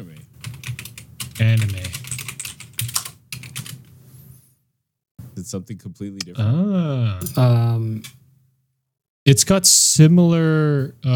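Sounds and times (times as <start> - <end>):
typing on a computer keyboard: 0.4 - 3.8
speech: 1.4 - 2.0, 5.5 - 8.2, 9.3 - 11.1.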